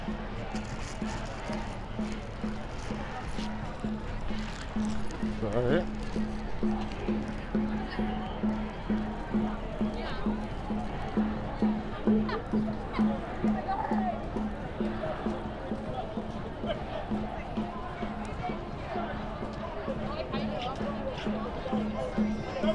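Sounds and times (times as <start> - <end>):
dense babble of many voices and shouting at a march: 0.0 - 22.7
rapid regular drumming or rhythmic chanting at a march: 0.0 - 22.7.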